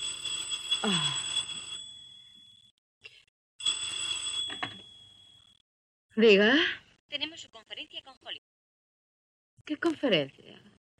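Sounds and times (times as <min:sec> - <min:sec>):
telephone ringing: 0:00.0 - 0:02.7, 0:03.6 - 0:05.6
speech: 0:00.8 - 0:01.2, 0:06.2 - 0:08.5, 0:09.6 - 0:10.7.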